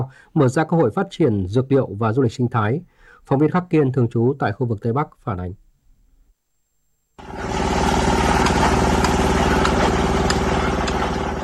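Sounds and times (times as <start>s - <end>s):
speech: 0.0s - 5.6s
heavy diesel engine of road construction machinery: 7.2s - 11.4s.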